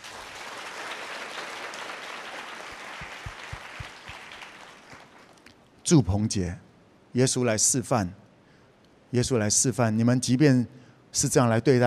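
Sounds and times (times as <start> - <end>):
audience clapping hands: 0.0 - 5.6
speech: 5.9 - 8.2, 9.1 - 11.8.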